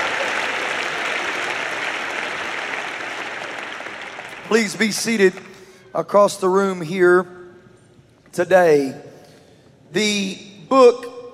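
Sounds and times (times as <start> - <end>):
large crowd clapping hands: 0.0 - 5.8
speech: 4.5 - 7.4, 8.3 - 9.1, 9.9 - 11.1.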